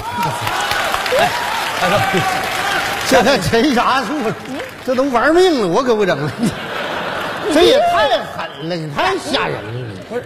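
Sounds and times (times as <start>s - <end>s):
audience applause: 0.0s - 8.5s
laughter: 0.0s - 10.2s
speech: 1.2s - 2.4s, 3.1s - 6.7s, 7.5s - 10.2s.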